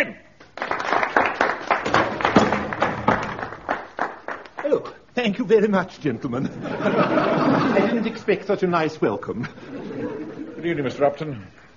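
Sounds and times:
speech: 0:00.0 - 0:00.2, 0:05.2 - 0:09.8, 0:10.6 - 0:11.6
audience applause: 0:00.6 - 0:04.9
laughter: 0:06.4 - 0:08.4, 0:09.2 - 0:11.2.

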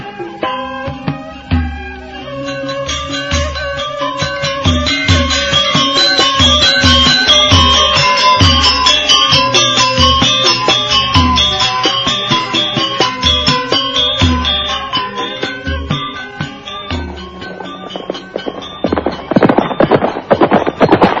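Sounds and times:
tonal musical backdrop: 0:00.0 - 0:21.1
hoofbeats of horses galloping: 0:17.8 - 0:21.1.

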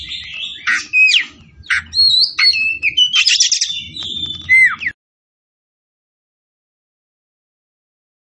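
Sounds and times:
Oriental magpie-robin singing vigorously: 0:00.0 - 0:05.0.

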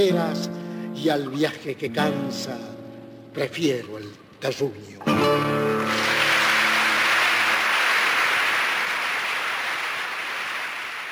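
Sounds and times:
speech: 0:00.0 - 0:02.8, 0:03.4 - 0:06.0
applause at end of live recording: 0:05.4 - 0:11.1.

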